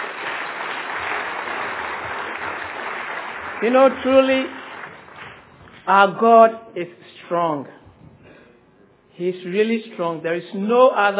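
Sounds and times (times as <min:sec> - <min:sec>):
audience clapping: 0:00.0 - 0:05.9
speech: 0:03.6 - 0:04.6, 0:05.9 - 0:07.8, 0:09.2 - 0:11.1.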